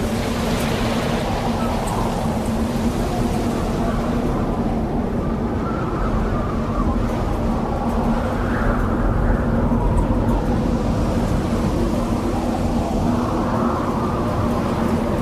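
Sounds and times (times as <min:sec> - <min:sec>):
sinister howling winds: 0:00.0 - 0:15.2.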